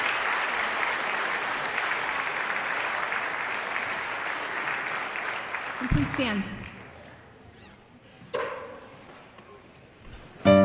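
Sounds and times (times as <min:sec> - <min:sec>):
applause: 0:00.0 - 0:07.1
speech: 0:05.8 - 0:06.8.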